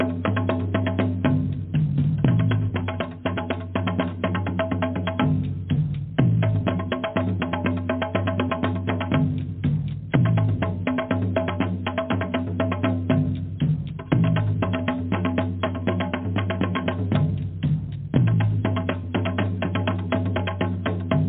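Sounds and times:
powerful drumming groove: 0.0 - 21.2
low throbbing bass: 0.8 - 3.3, 5.1 - 7.3, 9.1 - 10.9, 13.0 - 15.0, 16.6 - 19.5.

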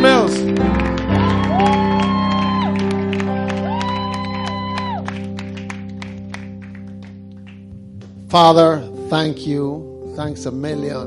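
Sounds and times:
church audience clapping to welcome a bishop: 0.0 - 8.2
music: 0.0 - 11.0
shouts and whoops: 1.1 - 5.2
speech: 8.3 - 11.0.

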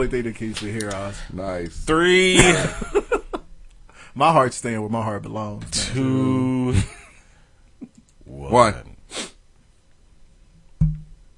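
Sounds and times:
speech: 0.0 - 3.0, 4.2 - 7.0, 8.3 - 8.9
laughter: 2.3 - 3.5
nasal sniff: 9.1 - 9.4.

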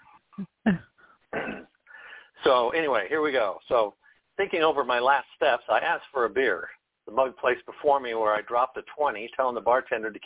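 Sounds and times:
speech: 0.4 - 0.9, 2.5 - 10.2
person coughing: 1.4 - 1.7.

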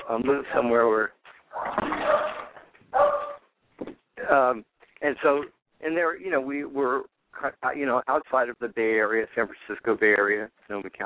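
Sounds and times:
speech: 0.1 - 2.3, 4.3 - 11.0
pet dog barking and yipping: 1.5 - 3.5.

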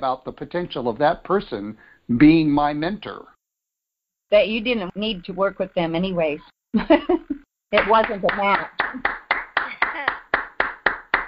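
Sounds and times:
speech: 0.0 - 3.3, 4.3 - 9.2
hand claps: 7.8 - 11.2.

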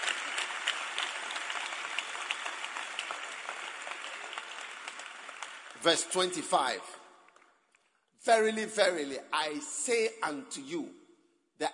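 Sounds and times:
audience clapping: 0.0 - 8.0
speech: 5.8 - 7.0, 8.2 - 11.0.

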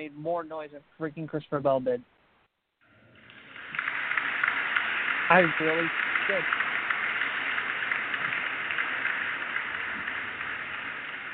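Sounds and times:
speech: 0.0 - 2.2, 5.3 - 6.6
crowd clapping: 3.1 - 11.3.

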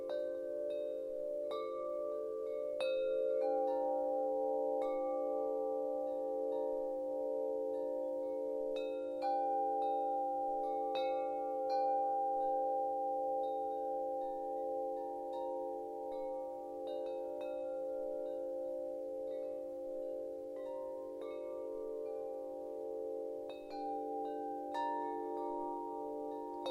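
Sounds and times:
serene wind chimes: 0.0 - 26.6.

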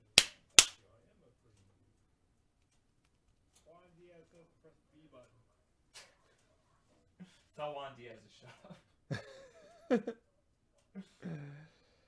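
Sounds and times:
hand clap: 0.0 - 0.8
speech: 7.2 - 10.3
laughter: 8.3 - 10.3.

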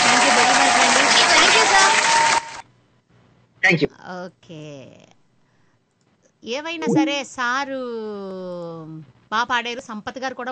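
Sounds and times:
audience clapping after a singing performance: 0.0 - 2.6
crowd voices: 0.0 - 2.6
speech: 3.7 - 5.2, 6.4 - 10.5.

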